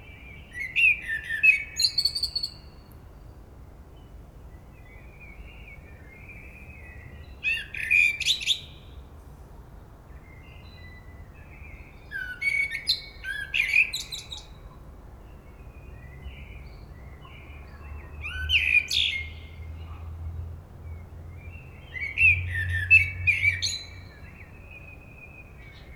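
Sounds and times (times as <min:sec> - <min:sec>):
common blackbird singing: 0:00.4 - 0:02.8, 0:05.2 - 0:08.9, 0:10.3 - 0:14.6, 0:16.0 - 0:19.6, 0:21.4 - 0:25.9.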